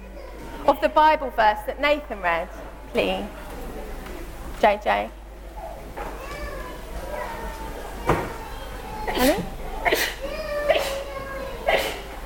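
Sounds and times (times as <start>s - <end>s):
murmur of voices: 0.0s - 12.2s
speech: 0.7s - 3.5s, 4.6s - 5.2s, 9.2s - 10.2s
person sneezing: 9.1s - 11.0s, 11.7s - 12.1s.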